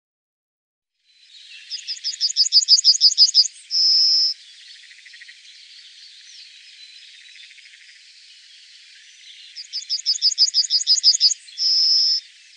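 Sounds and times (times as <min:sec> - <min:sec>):
yellowhammer song: 0:01.0 - 0:12.5.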